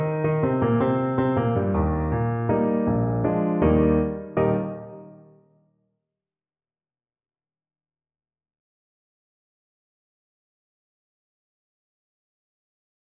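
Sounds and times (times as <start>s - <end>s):
piano: 0.0s - 5.6s.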